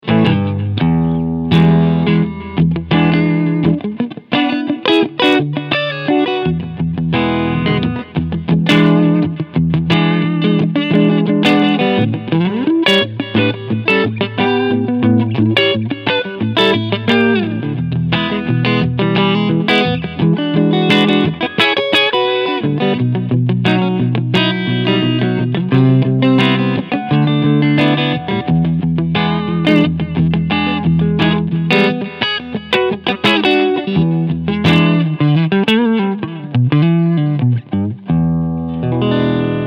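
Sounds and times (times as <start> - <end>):
PRS SE Silver Sky electric guitar clean sound front pickup blues style: 0.0 - 39.6.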